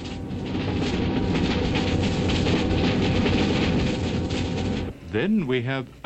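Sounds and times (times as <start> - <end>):
street leaf vacuum cleaner machine sucking up fallen leaves: 0.0 - 6.0
speech: 5.2 - 6.0.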